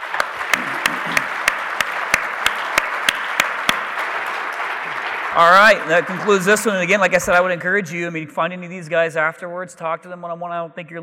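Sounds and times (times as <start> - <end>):
audience applause: 0.0 - 7.6
speech: 5.4 - 11.0.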